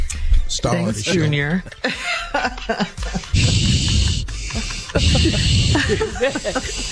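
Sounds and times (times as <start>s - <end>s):
speech: 0.6s - 3.0s, 5.0s - 6.8s
people chatting and chuckling: 1.0s - 6.8s
person imitating heavy wheezy breathing after climbing steps: 3.2s - 6.8s.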